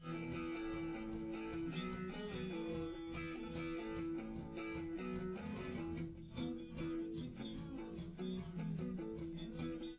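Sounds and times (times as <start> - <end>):
drums live recording: 0.0 - 9.9.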